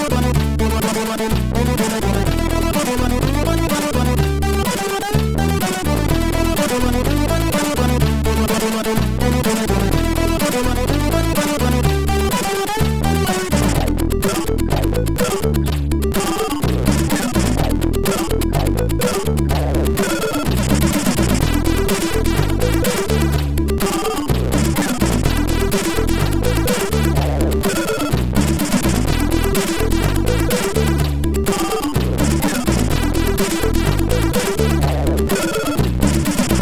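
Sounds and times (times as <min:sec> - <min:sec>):
chiptune music from MOS6581R4 chip: 0:00.0 - 0:36.6.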